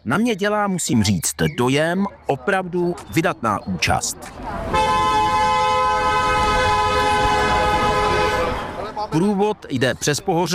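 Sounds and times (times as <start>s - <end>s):
speech: 0.0s - 5.0s, 9.1s - 10.5s
rumbling traffic: 0.0s - 10.5s
vehicle horn blaring: 4.7s - 8.8s.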